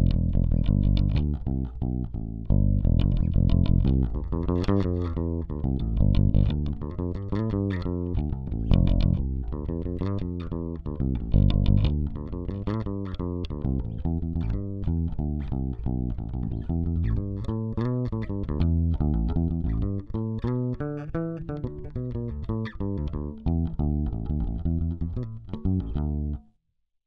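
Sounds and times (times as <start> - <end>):
bass phrases: 0.0 - 26.5.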